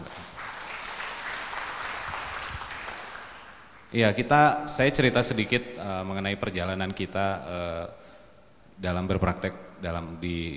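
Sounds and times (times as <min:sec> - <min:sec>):
audience applause: 0:00.0 - 0:03.9
speech: 0:03.9 - 0:08.1, 0:08.8 - 0:10.5.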